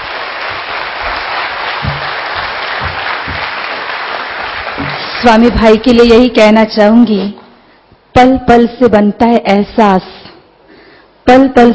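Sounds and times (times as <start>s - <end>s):
hall full of people applauding: 0.0s - 5.2s
speech: 5.2s - 7.4s, 8.2s - 10.2s, 11.3s - 11.7s.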